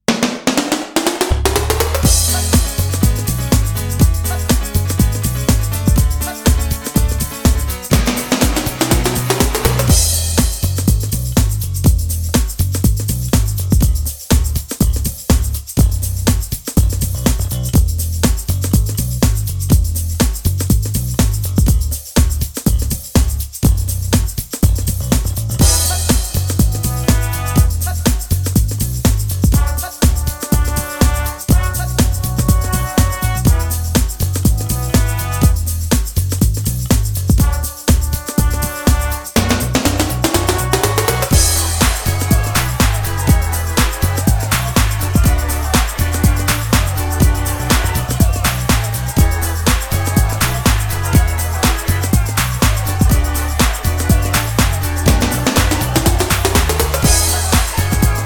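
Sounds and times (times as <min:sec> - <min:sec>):
commercial instrumental music: 0:00.1 - 0:58.2
laughter: 0:40.3 - 0:58.2.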